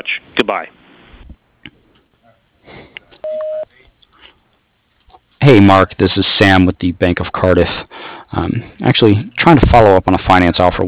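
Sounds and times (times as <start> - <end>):
speech: 0.0 - 0.8, 5.4 - 10.8
voicemail beep: 3.2 - 3.7.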